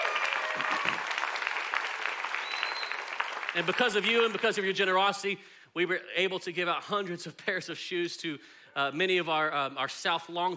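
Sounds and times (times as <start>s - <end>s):
sustained applause from a large gathering: 0.0s - 4.6s
speech: 3.6s - 10.5s.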